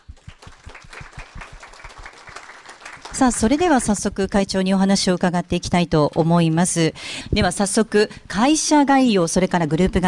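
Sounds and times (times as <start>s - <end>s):
audience applause welcoming a speaker: 0.0s - 4.0s
speech: 3.2s - 10.0s.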